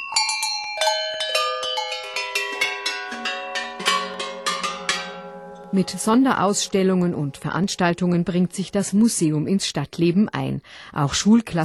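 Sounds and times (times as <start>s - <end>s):
tuned cowbells ringing: 0.0s - 8.6s
speech: 5.7s - 11.6s.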